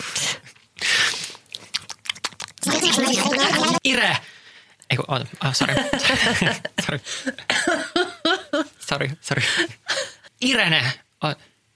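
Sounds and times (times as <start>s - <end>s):
lips smacking while chewing food: 0.8s - 2.9s
crunchy chewing of food: 1.1s - 2.9s
laughter: 2.7s - 3.8s, 5.6s - 8.8s
speech: 3.9s - 4.3s, 4.9s - 7.8s, 8.9s - 11.5s.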